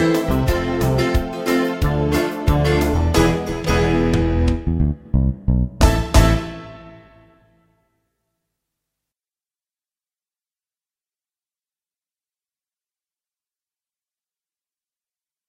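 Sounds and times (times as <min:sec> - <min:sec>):
instrumental music: 0:00.0 - 0:07.8.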